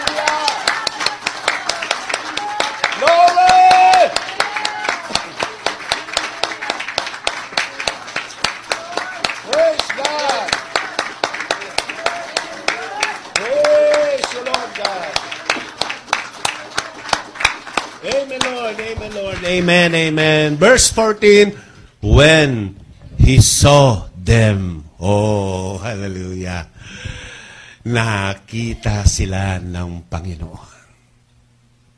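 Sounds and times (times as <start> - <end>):
church congregation rhythmic clapping in praise during a New Year service: 0.0 - 20.9
speech: 19.6 - 26.7, 27.9 - 30.7.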